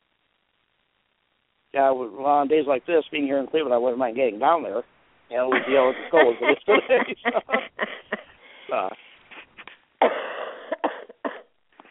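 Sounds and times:
speech: 1.7 - 9.0
laughter: 5.4 - 8.9
person with a cold coughing over a phone line: 10.0 - 11.8.

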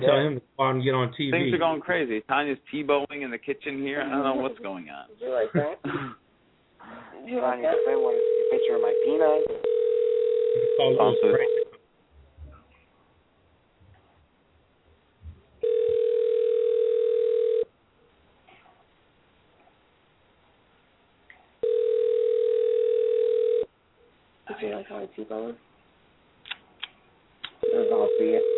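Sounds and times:
speech: 0.0 - 6.2, 6.8 - 9.9, 10.6 - 11.6, 24.5 - 25.7, 27.6 - 28.5
phone ringback tone while calling someone: 7.7 - 11.8, 15.6 - 17.7, 21.6 - 23.7, 27.6 - 28.5
person talking quietly: 10.8 - 11.6.

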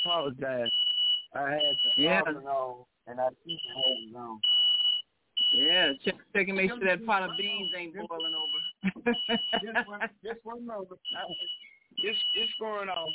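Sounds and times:
smoke alarm going off: 0.0 - 2.3, 3.5 - 6.1, 7.2 - 9.9, 11.0 - 13.1
speech: 0.0 - 4.5, 5.5 - 13.1
laughter: 1.5 - 2.7, 3.5 - 4.4, 8.8 - 11.4.

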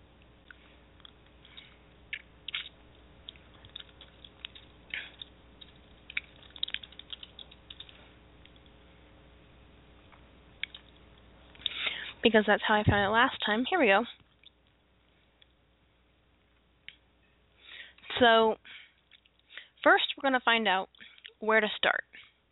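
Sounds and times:
faint steady hum: 0.0 - 22.5
computer keyboard typing a Google search: 3.5 - 8.0
speech: 12.2 - 14.2, 18.2 - 18.8, 19.8 - 22.1.

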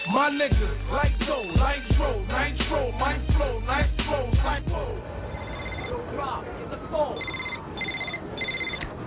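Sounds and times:
speech: 0.2 - 5.0
telephone ringing with electronic trilling: 5.2 - 6.1, 7.1 - 8.9.

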